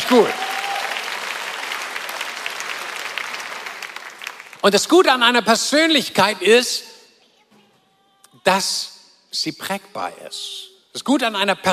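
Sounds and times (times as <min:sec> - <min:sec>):
audience applause: 0:00.0 - 0:04.6
speech: 0:00.1 - 0:00.5, 0:04.6 - 0:06.9, 0:08.4 - 0:11.7.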